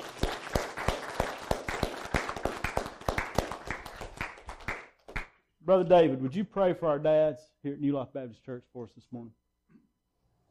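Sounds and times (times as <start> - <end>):
audience round of applause: 0.0 - 5.3
speech: 5.7 - 9.4.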